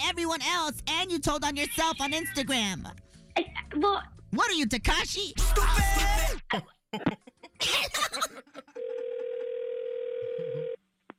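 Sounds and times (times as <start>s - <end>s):
speech: 0.1s - 8.8s
person coughing: 6.2s - 8.4s
throat clearing: 6.5s - 7.8s
telephone dial tone after a call disconnects: 8.8s - 10.8s.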